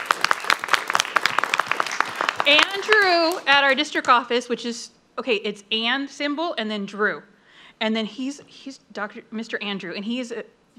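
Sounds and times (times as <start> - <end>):
round of applause at a board meeting: 0.0 - 3.6
speech: 2.5 - 10.7.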